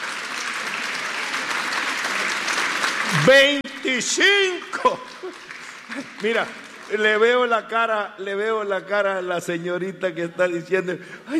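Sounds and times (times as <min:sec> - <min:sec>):
applause: 0:00.0 - 0:07.9
speech: 0:03.2 - 0:05.4, 0:06.0 - 0:11.3.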